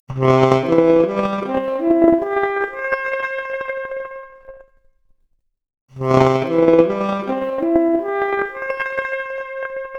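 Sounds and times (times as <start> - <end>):
noisy 4-bit saxophone arpeggio: 0.2 - 4.1, 6.0 - 9.9.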